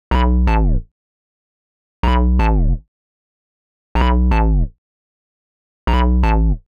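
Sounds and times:
hard synth bass note in E at 125 BPM: 0:02.0 - 0:02.8, 0:04.0 - 0:04.7, 0:05.9 - 0:06.6.

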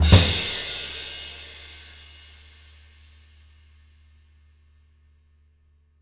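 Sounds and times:
live drums: 0:00.0 - 0:02.9.

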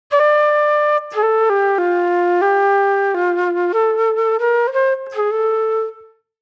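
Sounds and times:
reflective flute music: 0:00.1 - 0:06.4.

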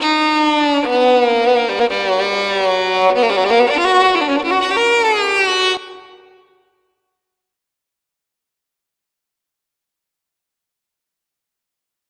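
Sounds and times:
violin: 0:00.0 - 0:06.7.

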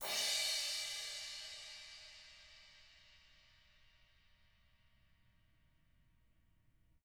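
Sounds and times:
Zildjian brush crashes: 0:00.0 - 0:03.4.

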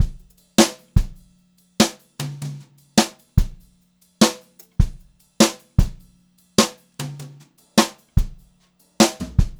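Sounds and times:
brushed jazzy drum loops: 0:00.0 - 0:09.5.

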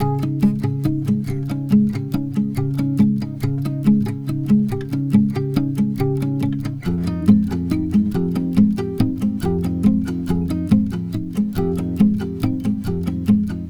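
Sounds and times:
acoustic pop guitar in F minor: 0:00.0 - 0:13.6.

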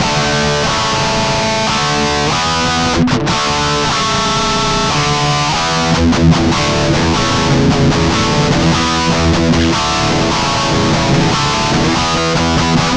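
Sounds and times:
guitar licks: 0:00.0 - 0:12.9.

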